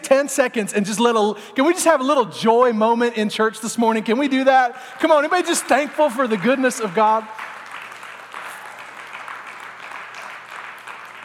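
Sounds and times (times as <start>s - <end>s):
speech: 0.1s - 7.5s
crowd clapping: 4.8s - 11.2s.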